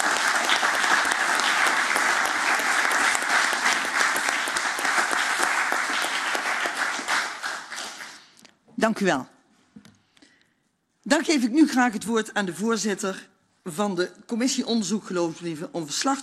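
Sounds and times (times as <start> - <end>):
applause for departing aldermen: 0.0 - 8.5
speech: 8.8 - 9.3, 11.1 - 16.2.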